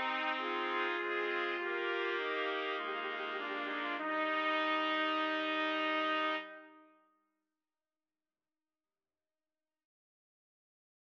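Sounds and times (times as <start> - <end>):
trumpets playing: 0.0 - 6.8.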